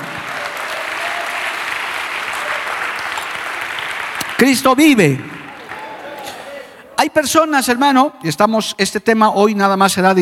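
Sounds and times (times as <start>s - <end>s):
audience applause: 0.0s - 6.8s
speech: 4.4s - 5.3s, 7.0s - 10.2s.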